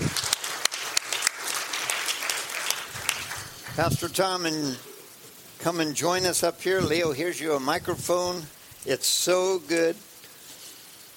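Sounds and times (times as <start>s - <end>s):
audience applause welcoming a speaker onto the stage: 0.0s - 4.2s
speech: 3.8s - 4.9s, 5.6s - 10.1s.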